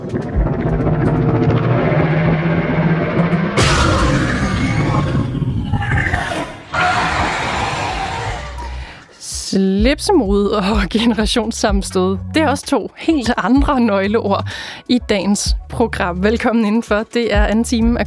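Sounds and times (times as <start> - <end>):
Demogorgon monster sound: 0.0 - 9.0
speech: 9.5 - 18.0.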